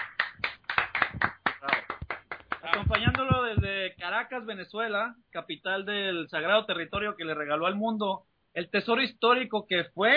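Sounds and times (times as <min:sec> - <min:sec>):
hand claps: 0:00.0 - 0:03.7
speech: 0:02.8 - 0:10.1.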